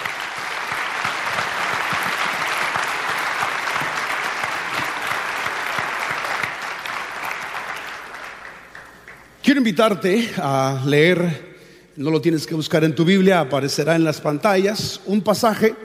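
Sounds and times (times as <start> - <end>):
audience applause: 0.0 - 9.4
speech: 9.5 - 15.8.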